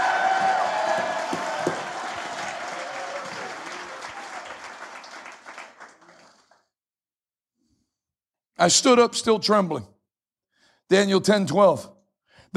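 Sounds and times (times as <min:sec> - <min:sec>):
audience clapping hands: 0:00.0 - 0:06.7
speech: 0:08.6 - 0:09.9, 0:10.9 - 0:11.9.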